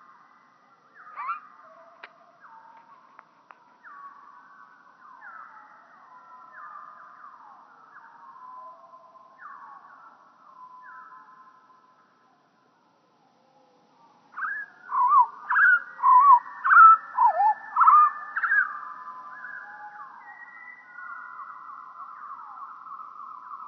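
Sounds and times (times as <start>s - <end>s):
European pied flycatcher song at lowered pitch: 14.4s - 23.6s.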